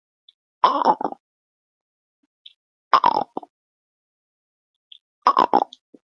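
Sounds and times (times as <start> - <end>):
vocal imitation of digestive stomach rumble: 0.6 - 1.2, 3.0 - 3.5, 5.3 - 5.8.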